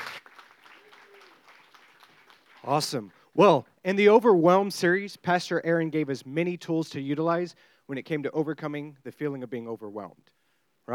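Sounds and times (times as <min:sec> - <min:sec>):
audience applause: 0:00.0 - 0:03.1
speech: 0:02.6 - 0:10.9.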